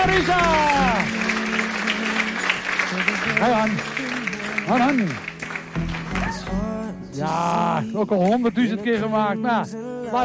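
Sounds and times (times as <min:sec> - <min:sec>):
speech: 0:00.0 - 0:01.2, 0:03.4 - 0:04.0, 0:04.7 - 0:05.3, 0:07.2 - 0:10.2
audience applause for three contestants: 0:00.0 - 0:06.8.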